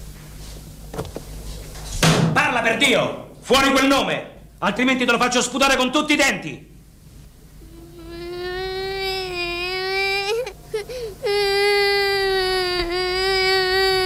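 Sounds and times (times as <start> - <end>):
speech: 2.6 - 6.7
person crying during a police interrogation: 7.7 - 14.0.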